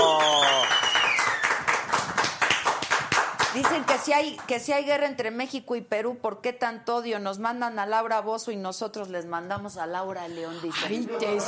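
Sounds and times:
applause: 0.0s - 4.6s
speech: 3.6s - 11.4s.

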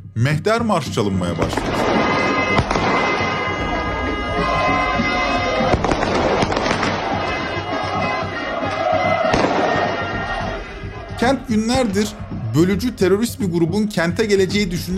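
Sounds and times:
speech: 0.2s - 3.2s, 11.2s - 14.9s
fireworks and sound bombs banging: 1.3s - 12.4s
crowd noise: 1.6s - 13.2s.

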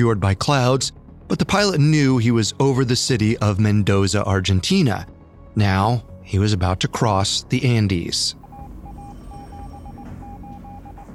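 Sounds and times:
speech: 0.0s - 8.4s
Morse code radio signal beeps: 8.4s - 11.1s.

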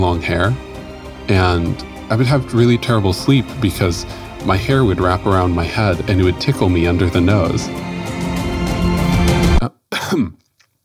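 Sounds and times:
speech: 0.0s - 0.7s, 1.3s - 8.3s, 10.1s - 10.4s
person clearing throat: 9.5s - 10.5s
person coughing after a bug flew into their mouth: 9.6s - 10.5s.

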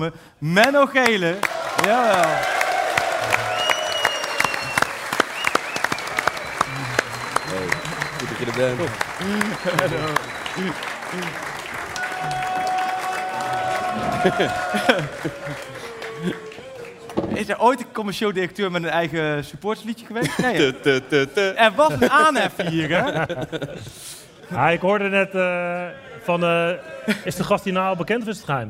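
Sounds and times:
speech: 0.0s - 2.6s, 8.4s - 12.5s, 14.0s - 16.7s, 17.4s - 28.6s
audience applause: 1.3s - 17.4s
laughter: 6.0s - 17.2s, 20.2s - 24.4s, 26.8s - 27.5s.

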